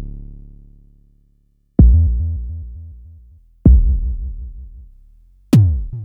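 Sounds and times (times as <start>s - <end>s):
Jomox Airbase990 drum machine: 1.8s - 4.9s, 5.5s - 6.0s.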